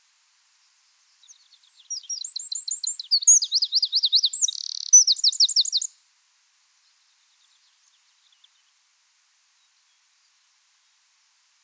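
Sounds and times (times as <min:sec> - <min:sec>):
Eurasian wren song: 0:01.3 - 0:05.9.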